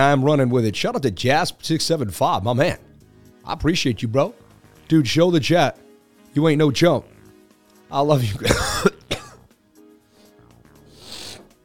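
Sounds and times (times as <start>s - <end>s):
speech: 0.0s - 7.1s, 7.9s - 9.0s
person with a mucus-filled chest coughing: 8.4s - 9.5s
throat clearing and breathy rasps: 8.4s - 9.5s.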